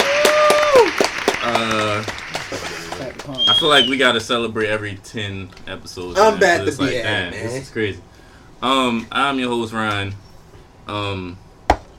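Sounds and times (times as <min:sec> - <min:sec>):
applause: 0:00.0 - 0:04.0
voices whooping and cheering: 0:00.0 - 0:04.0
speech: 0:03.6 - 0:10.2, 0:10.9 - 0:11.4.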